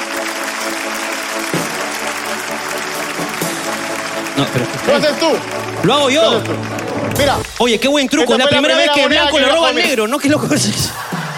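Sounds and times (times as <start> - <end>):
applause: 0.0 - 9.5
speech: 4.4 - 11.0
laughter: 9.0 - 11.3.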